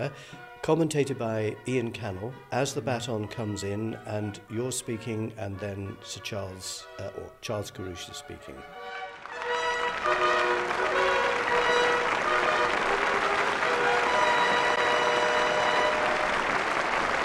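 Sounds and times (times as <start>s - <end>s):
speech: 0.0s - 9.0s
theatre audience applause in archive recording: 8.8s - 17.2s.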